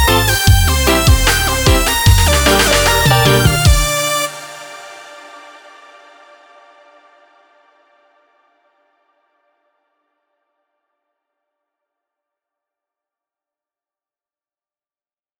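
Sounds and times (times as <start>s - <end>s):
reggae remix music: 0.0s - 4.6s.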